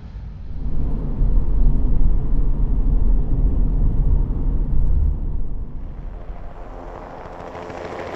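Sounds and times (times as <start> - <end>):
transportation sound effects: 0.4 - 8.0.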